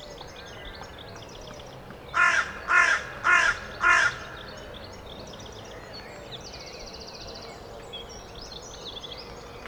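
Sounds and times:
carrion crow giving rasping caws: 2.2 - 4.4.

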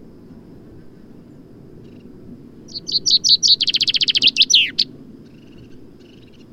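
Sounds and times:
common chaffinch singing: 2.7 - 4.9.

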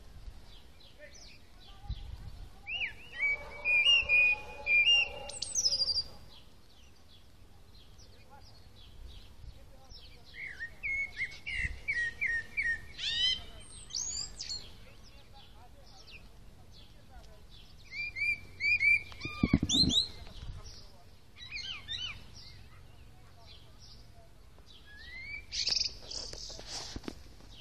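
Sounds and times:
Common blackbird singing: 0.5 - 7.2, 8.0 - 26.6.

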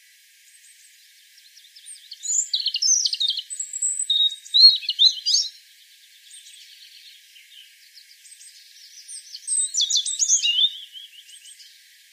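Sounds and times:
European robin song: 0.5 - 12.0.

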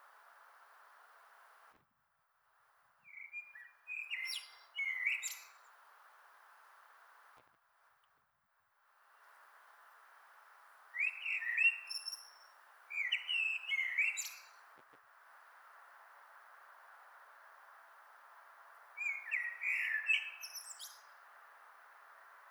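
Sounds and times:
steady hiss: 0.0 - 1.9, 2.6 - 8.1, 8.8 - 22.5
common blackbird singing: 3.1 - 5.4, 11.0 - 14.5, 19.0 - 21.0.

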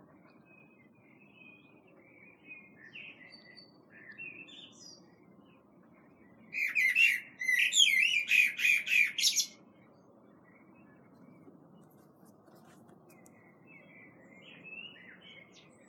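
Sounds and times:
Common blackbird singing: 0.4 - 5.6, 6.5 - 9.6, 13.3 - 15.8.

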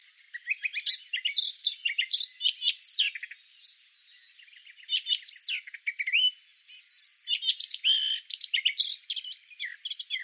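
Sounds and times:
Eurasian blackcap Sylvia atricapilla singing a fast varied warble: 0.0 - 10.2.

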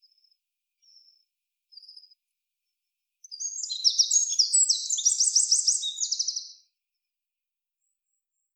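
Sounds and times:
Eurasian wren dry buzzy rattling calls: 3.4 - 6.4.

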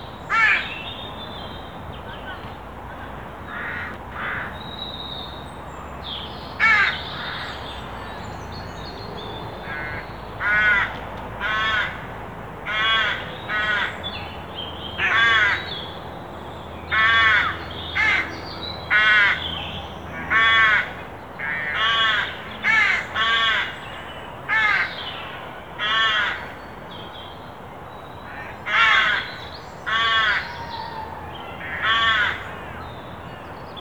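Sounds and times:
Carrion crow Corvus corone cawing: 0.3 - 0.7, 3.5 - 4.5, 6.6 - 7.5, 9.6 - 12.0, 12.7 - 13.9, 15.0 - 15.7, 16.9 - 18.3, 18.9 - 19.4, 20.3 - 23.8, 24.5 - 25.0, 25.8 - 26.6, 28.3 - 32.5.

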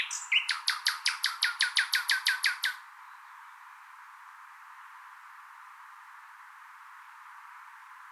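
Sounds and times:
common nightingale song: 0.0 - 3.7.

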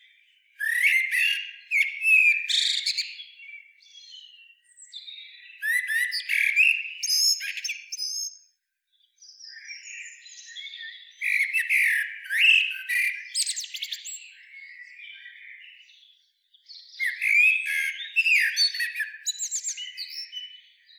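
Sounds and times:
Eurasian blackbird Turdus merula low fluted whistles: 0.6 - 3.2, 5.6 - 8.4, 11.2 - 14.2, 17.0 - 20.5.

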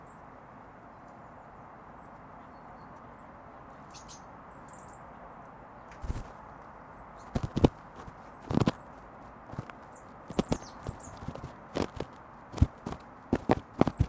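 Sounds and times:
Eurasian blue tit calling: 3.9 - 5.0, 6.0 - 14.0.

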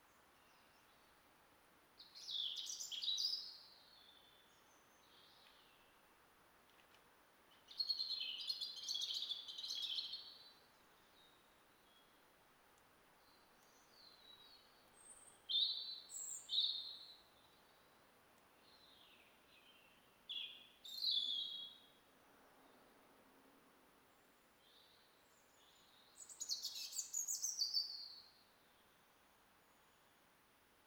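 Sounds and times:
soft hiss: 0.0 - 30.8
European robin singing: 2.0 - 6.0, 7.5 - 12.1, 13.2 - 17.9, 18.6 - 22.0, 24.6 - 28.4.

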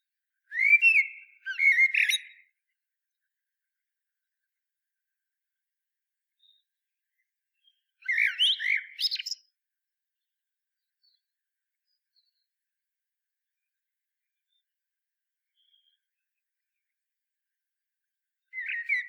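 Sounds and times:
common blackbird Turdus merula singing: 0.5 - 2.5, 7.7 - 9.4, 18.5 - 19.0.

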